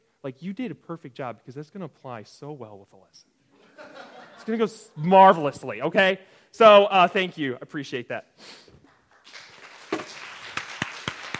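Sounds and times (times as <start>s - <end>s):
speech: 0.2s - 8.6s
laughter: 3.6s - 4.5s
a few claps: 8.8s - 11.3s.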